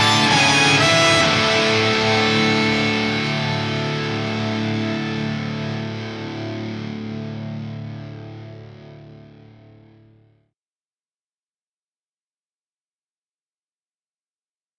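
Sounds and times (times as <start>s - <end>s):
guitar: 0.0s - 10.4s.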